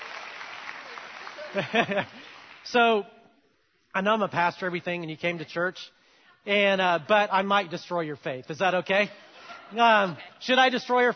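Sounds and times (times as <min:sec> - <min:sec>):
church audience applause welcoming a volunteer on stage: 0:00.0 - 0:02.8
laughter: 0:01.3 - 0:02.4, 0:09.0 - 0:10.6
speech: 0:01.5 - 0:03.2, 0:03.9 - 0:11.1.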